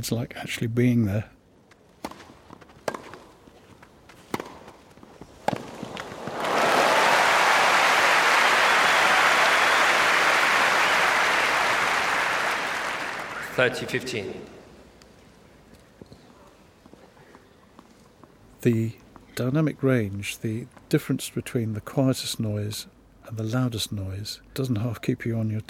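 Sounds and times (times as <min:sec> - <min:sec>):
speech: 0:00.0 - 0:01.4, 0:13.6 - 0:14.6, 0:18.6 - 0:25.6
crowd cheering and applauding at a court sports match: 0:06.0 - 0:14.2.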